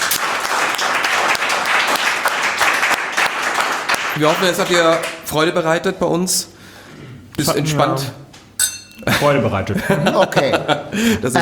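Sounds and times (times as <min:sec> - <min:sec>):
audience applause: 0:00.0 - 0:05.2
speech: 0:04.2 - 0:08.2, 0:09.0 - 0:11.4
laughter: 0:09.0 - 0:11.4.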